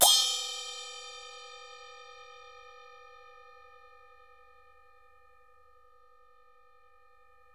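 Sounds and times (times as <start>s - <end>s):
hsiao chin Chinese cymbals: 0.0s - 4.8s.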